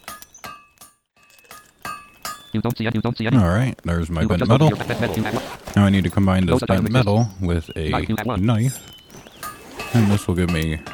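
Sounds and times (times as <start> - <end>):
hammer forging metal at a fire in a video game: 0.0 - 2.6
speech: 2.5 - 9.0, 9.9 - 10.9.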